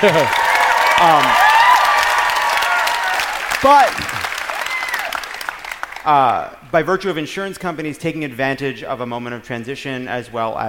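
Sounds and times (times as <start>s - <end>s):
speech: 0.0s - 0.4s, 1.0s - 1.4s, 3.6s - 4.3s, 6.0s - 10.6s
audience applause for Obamacare: 0.0s - 6.4s.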